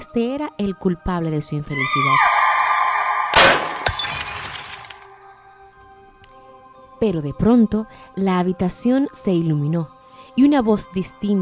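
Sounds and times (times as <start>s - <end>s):
speech: 0.1s - 2.3s, 7.0s - 11.3s
mirror smashed to pieces with hammer: 3.3s - 5.1s
falling glass shards tinkling: 3.4s - 5.3s.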